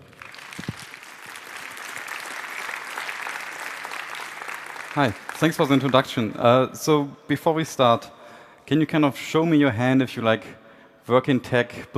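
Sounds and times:
audience applause welcoming speaker on stage: 0.0 - 6.4
speech: 5.0 - 11.9.

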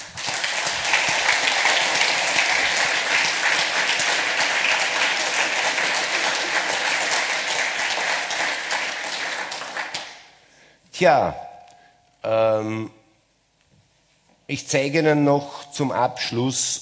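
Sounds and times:
audience applause: 0.0 - 10.2
speech: 11.0 - 11.4, 12.2 - 13.0, 14.5 - 16.7.

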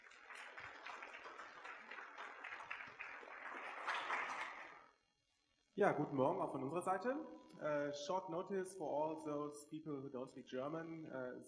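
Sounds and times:
audience clapping: 0.0 - 4.9
speech: 5.8 - 11.4.

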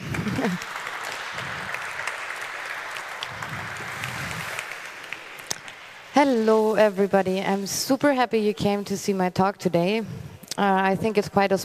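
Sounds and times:
audience applause: 0.0 - 6.5
speech: 0.4 - 0.8, 6.2 - 11.6.

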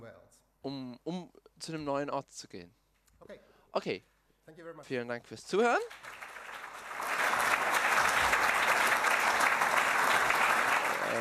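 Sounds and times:
speech: 0.3 - 6.2
audience applause after a talk: 5.8 - 11.2.

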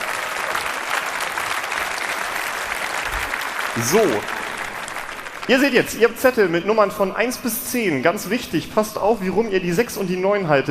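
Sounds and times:
audience applause: 0.0 - 7.0
speech: 3.8 - 4.4, 5.5 - 10.6.

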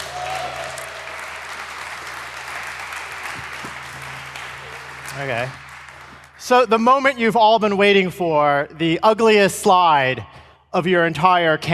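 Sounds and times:
audience applause: 0.0 - 6.8
speech: 5.2 - 5.6, 6.4 - 11.7.

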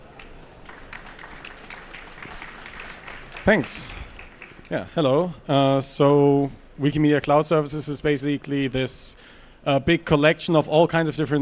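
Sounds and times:
welcoming applause from audience: 0.0 - 4.9
speech: 3.4 - 4.0, 4.7 - 11.3.

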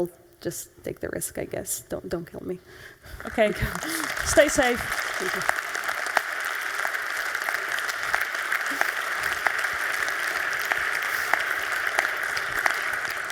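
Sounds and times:
speech: 0.0 - 5.6
audience applause: 3.2 - 13.3.

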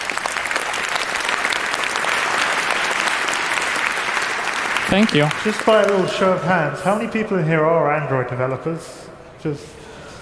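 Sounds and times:
audience applause: 0.0 - 6.6
speech: 4.9 - 9.8.

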